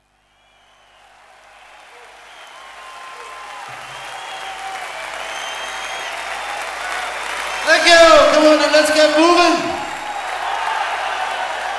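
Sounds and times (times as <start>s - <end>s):
live concert audience applause: 0.0s - 11.7s
faint cheers: 0.4s - 11.7s
scattered whistles: 2.3s - 6.6s
speech: 8.6s - 9.7s.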